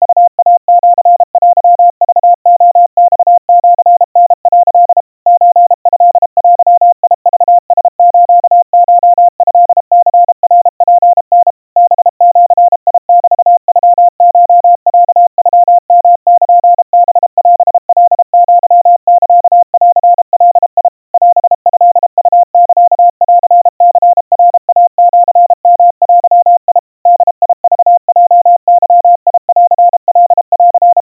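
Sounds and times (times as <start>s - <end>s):
crispy 700 Hz Morse code tones: 0.0s - 31.0s.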